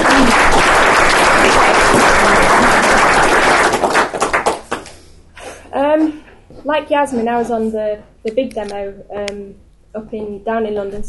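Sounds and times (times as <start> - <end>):
audience applause: 0.0 - 4.9
speech: 6.7 - 11.0.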